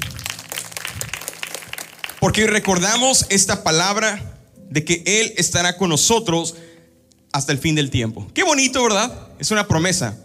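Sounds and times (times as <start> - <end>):
audience applauding: 0.0 - 3.2
speech: 2.2 - 10.2.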